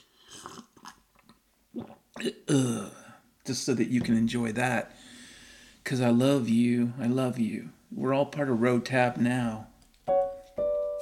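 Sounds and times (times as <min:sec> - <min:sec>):
person slurping a sip of water: 0:00.0 - 0:02.7
speech: 0:01.8 - 0:05.1, 0:05.9 - 0:09.7.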